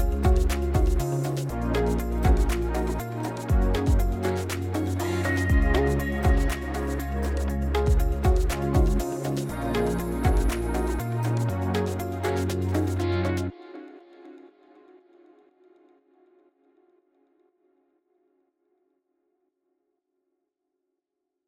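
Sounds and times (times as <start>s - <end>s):
instrumental music: 0.0s - 13.8s.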